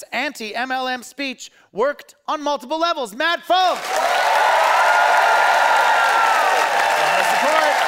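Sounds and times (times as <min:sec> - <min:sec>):
speech: 0:00.0 - 0:04.6
audience applause: 0:03.8 - 0:07.8.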